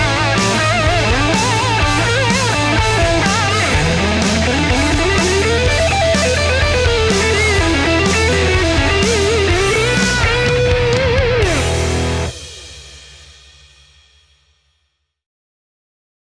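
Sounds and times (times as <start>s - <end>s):
blues guitar techniques: 0.0s - 12.5s.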